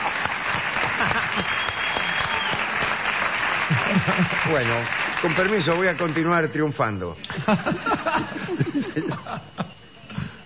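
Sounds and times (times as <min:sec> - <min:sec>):
crowd applauding: 0:00.0 - 0:07.6
laughter: 0:00.8 - 0:01.8, 0:03.6 - 0:04.8, 0:07.2 - 0:10.4
speech: 0:04.5 - 0:09.8.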